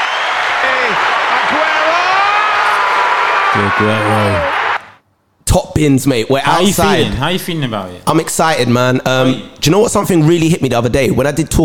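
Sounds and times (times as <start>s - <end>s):
whistle-like cheers: 0.0s - 4.9s
applause sound effect: 0.0s - 5.0s
speech: 3.6s - 4.6s, 5.5s - 11.6s.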